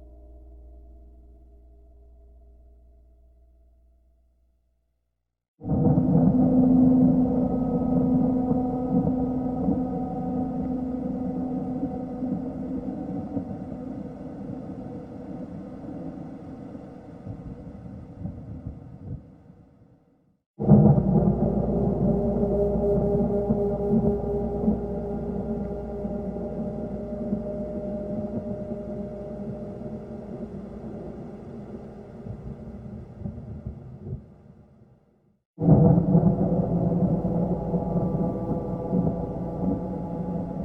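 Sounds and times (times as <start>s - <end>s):
thunder: 5.6s - 13.7s, 17.2s - 19.6s, 20.6s - 34.6s, 35.6s - 40.6s
gong: 5.6s - 14.8s, 20.6s - 32.1s, 35.6s - 40.6s.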